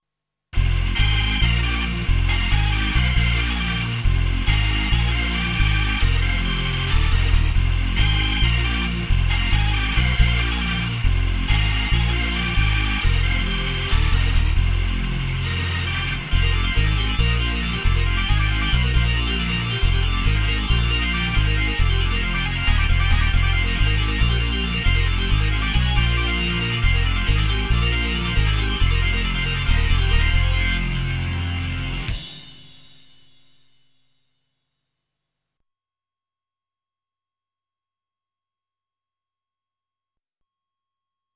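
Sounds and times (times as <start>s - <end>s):
Hammond B3 organ: 0.6s - 32.7s.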